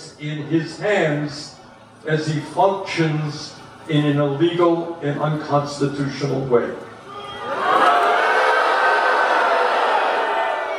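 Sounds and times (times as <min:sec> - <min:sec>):
speech: 0:00.2 - 0:06.9
overflow rally crowd cheering: 0:07.0 - 0:10.7.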